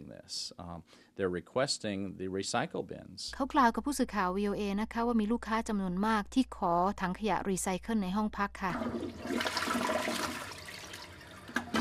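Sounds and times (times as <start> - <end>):
speech: 0.1 - 10.4
water-saving toilet flushing: 8.7 - 11.7.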